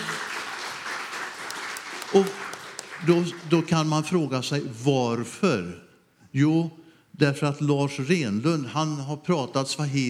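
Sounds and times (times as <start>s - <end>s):
applause: 0.0s - 4.1s
speech: 2.1s - 2.4s, 3.0s - 10.0s.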